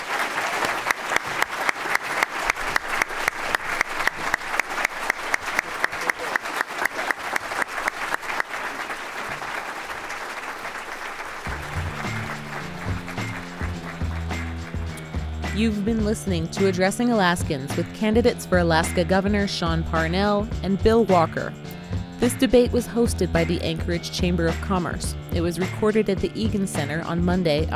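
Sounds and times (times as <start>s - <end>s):
audience applause: 0.0s - 15.0s
speech: 15.6s - 21.6s, 22.2s - 27.7s.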